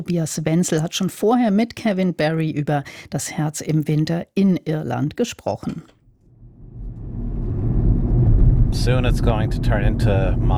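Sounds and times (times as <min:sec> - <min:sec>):
speech: 0:00.0 - 0:06.0, 0:08.7 - 0:10.5
car engine rumble driving through the countryside of County Sligo, Ireland: 0:06.3 - 0:10.5.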